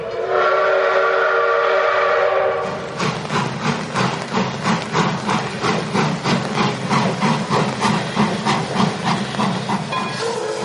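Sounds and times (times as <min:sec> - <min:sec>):
train whistle: 0:00.0 - 0:02.8, 0:10.0 - 0:10.6
rolling train chugging: 0:00.0 - 0:10.6
train steam hissing: 0:00.3 - 0:10.6.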